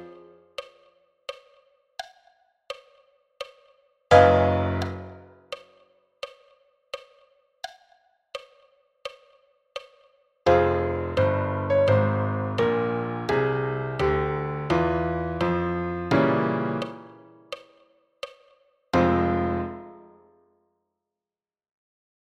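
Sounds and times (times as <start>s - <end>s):
piano playing: 0.0s - 0.5s, 4.1s - 5.3s, 10.5s - 17.5s, 19.0s - 20.2s.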